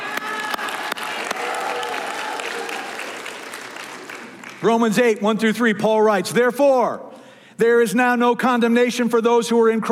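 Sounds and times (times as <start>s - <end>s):
audience applause: 0.0s - 4.8s
speech: 4.6s - 9.9s.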